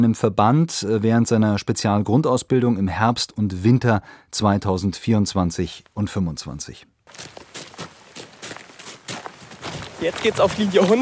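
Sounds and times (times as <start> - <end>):
speech: 0.0 - 7.5, 10.0 - 10.9
running footsteps of a soldier in helmet and vest on a shooting range: 7.1 - 10.9.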